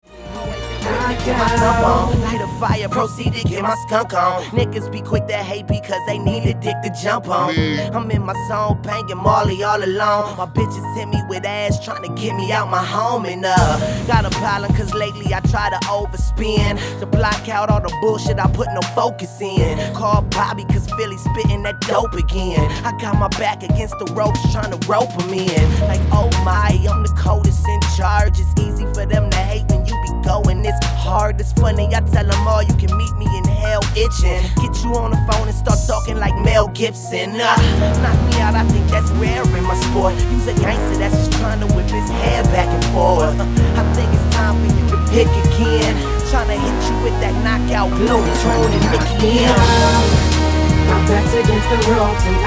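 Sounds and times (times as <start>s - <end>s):
unmixed music: 0.0s - 52.4s.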